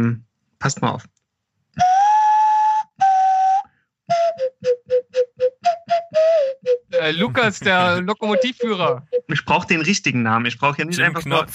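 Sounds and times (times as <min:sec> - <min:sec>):
speech: 0:00.0 - 0:01.2, 0:07.0 - 0:11.5
bubinga wood nose flute playing: 0:01.7 - 0:09.7
laughter: 0:07.2 - 0:08.0, 0:10.9 - 0:11.5.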